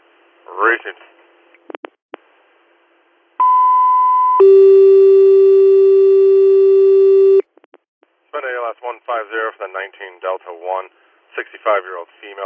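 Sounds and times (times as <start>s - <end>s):
speech: 0.5s - 1.2s, 9.1s - 12.4s
two-tone dispatch paging tones for ambulance crew: 3.4s - 7.4s.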